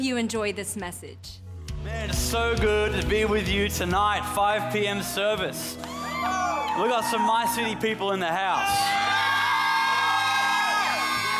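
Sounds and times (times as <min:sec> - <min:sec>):
speech: 0:00.0 - 0:09.0
rowdy crowd cheering and whooping at a church service: 0:05.8 - 0:07.9, 0:08.5 - 0:11.3.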